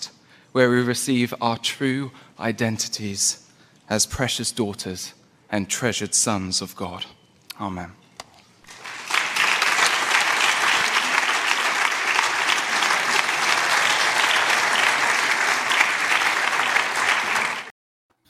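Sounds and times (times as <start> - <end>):
speech: 0.5 - 8.0
large audience applause after speech: 8.7 - 17.7.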